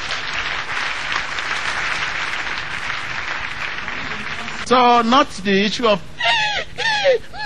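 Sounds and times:
audience applause: 0.0 - 5.1
speech: 4.7 - 6.1, 7.0 - 7.3.

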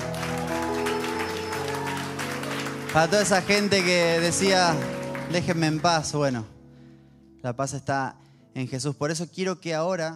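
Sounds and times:
audience applause: 0.0 - 6.2
speech: 2.9 - 6.5, 7.4 - 10.1.

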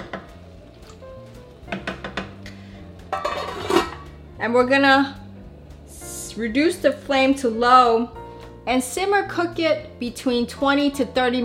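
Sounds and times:
metal lid placed on a cooking pot of vegan chana masala: 3.1 - 4.0
speech: 4.4 - 5.2, 6.4 - 11.4.

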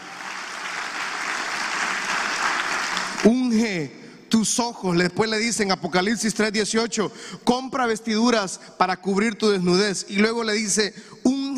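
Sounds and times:
audience applause: 0.0 - 3.3
speech: 3.2 - 11.5.

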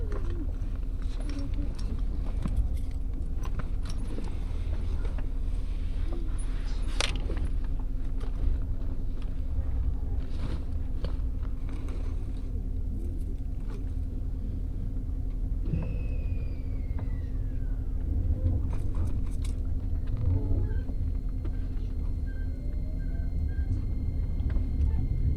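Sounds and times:
constant hum: 0.0 - 25.3
train ride rumble: 0.0 - 25.3
brief falling squeal: 15.7 - 17.8.

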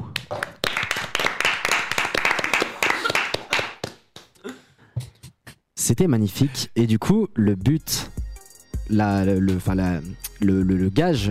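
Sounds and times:
crowd applause: 0.6 - 3.9
speech: 5.9 - 8.2, 8.9 - 11.2.

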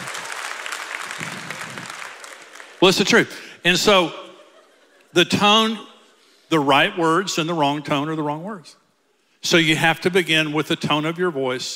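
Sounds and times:
audience applause: 0.0 - 3.2
speech: 2.8 - 4.2, 5.1 - 5.9, 6.5 - 8.8, 9.4 - 11.7
laughter: 3.9 - 5.4.

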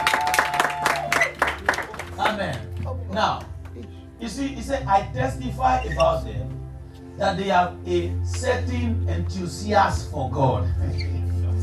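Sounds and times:
audience clapping: 0.0 - 3.9
speech: 3.2 - 6.6, 7.2 - 11.2.

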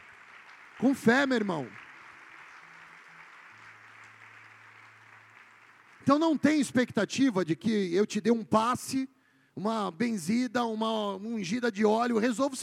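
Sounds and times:
audience applauding: 0.0 - 6.9
speech: 0.8 - 1.8, 6.1 - 12.6.

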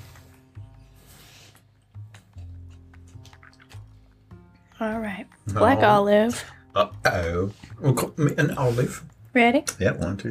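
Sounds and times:
person rinsing mouth with water: 3.1 - 4.4
speech: 4.8 - 10.2.

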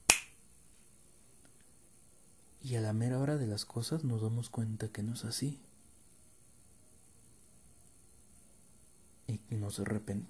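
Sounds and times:
finger snap: 0.0 - 0.4
faint hiss: 0.0 - 10.2
speech: 2.7 - 5.7, 9.7 - 10.2.

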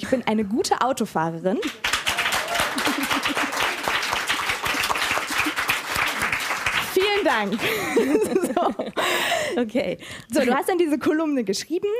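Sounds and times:
speech: 0.0 - 2.0, 7.4 - 11.9
audience clapping: 1.6 - 8.4
laughter: 1.7 - 6.3, 7.3 - 9.6.

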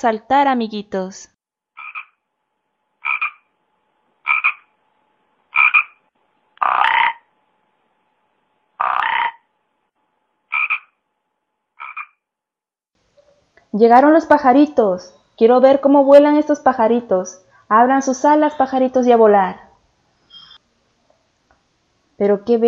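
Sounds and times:
speech: 0.0 - 1.3, 13.7 - 19.6, 22.2 - 22.6
toads croaking: 1.8 - 2.2, 3.0 - 3.5, 4.2 - 4.7, 5.5 - 6.0, 6.6 - 7.3, 8.8 - 9.5, 10.5 - 11.0, 11.8 - 12.2.

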